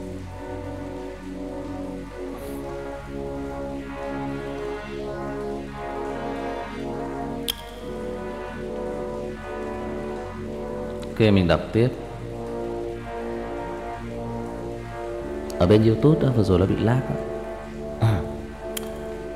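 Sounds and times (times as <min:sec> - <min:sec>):
steady rain hiss: 0:00.0 - 0:19.3
sharp tick: 0:07.4 - 0:08.2, 0:18.7 - 0:19.1
speech: 0:11.2 - 0:12.0, 0:15.6 - 0:17.3.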